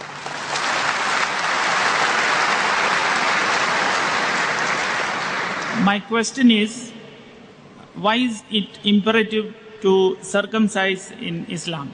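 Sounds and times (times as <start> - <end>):
audience clapping: 0.0 - 5.8
speech: 5.8 - 7.0, 8.0 - 11.9.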